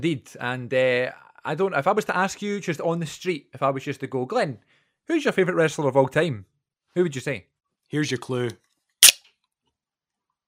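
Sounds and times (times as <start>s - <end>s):
speech: 0.0s - 8.6s
can being opened: 9.0s - 9.2s.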